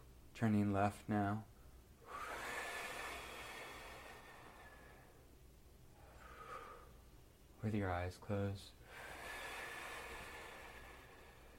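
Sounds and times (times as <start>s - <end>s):
speech: 0.4s - 1.5s, 7.6s - 9.1s
slow exhaling breath: 2.0s - 5.3s, 6.0s - 7.0s, 8.8s - 11.5s.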